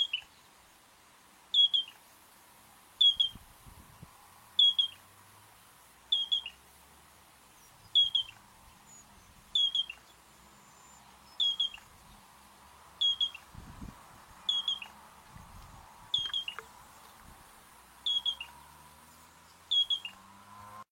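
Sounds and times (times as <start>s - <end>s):
Yellow-breasted Crake giving short high whistled notes: 1.5s - 2.0s, 3.0s - 3.4s, 4.6s - 5.0s, 6.1s - 6.6s, 7.9s - 11.9s, 13.0s - 13.4s, 14.5s - 14.9s, 16.1s - 16.6s, 18.0s - 18.5s, 19.7s - 20.2s.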